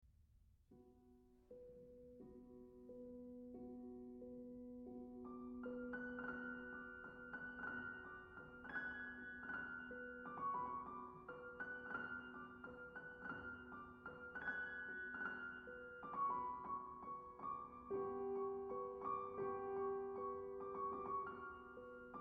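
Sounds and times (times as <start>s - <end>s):
piano folk dance music: 0.8s - 22.2s.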